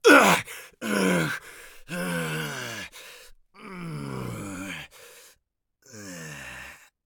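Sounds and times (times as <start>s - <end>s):
person crying out in agony: 0.0s - 1.3s.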